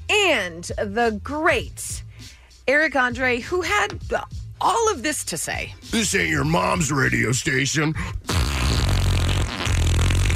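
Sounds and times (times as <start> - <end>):
speech: 0.3 - 8.4
fart sound effect: 8.3 - 10.3.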